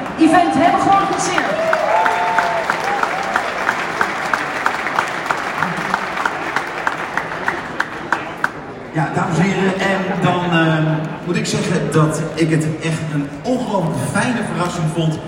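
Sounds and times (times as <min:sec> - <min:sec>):
audience applause: 0:00.0 - 0:08.9
speech: 0:00.2 - 0:01.7, 0:09.0 - 0:15.2.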